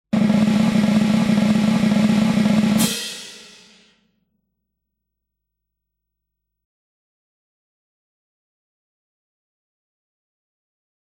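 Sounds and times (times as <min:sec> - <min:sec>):
drum roll: 0:00.1 - 0:03.9.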